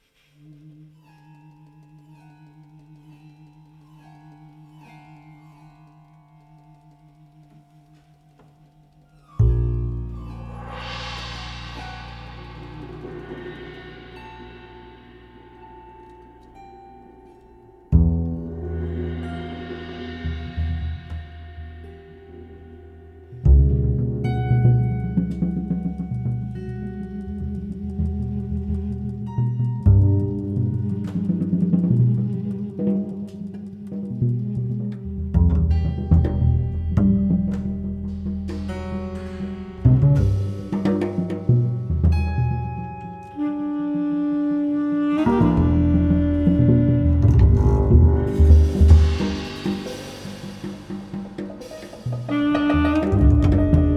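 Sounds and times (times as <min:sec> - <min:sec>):
music interlude: 0:00.4 - 0:53.9.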